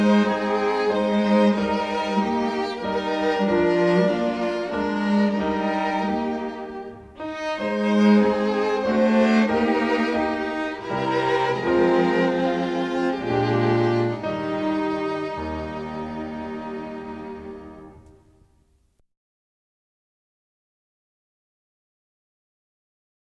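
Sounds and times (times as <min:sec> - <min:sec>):
solo music: 0:00.0 - 0:18.5.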